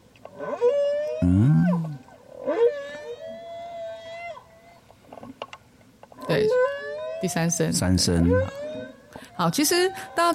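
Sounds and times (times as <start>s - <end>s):
whale song: 0.4s - 4.9s, 6.4s - 7.4s, 8.2s - 9.1s
speech: 1.2s - 1.8s, 7.2s - 8.6s, 9.4s - 10.3s.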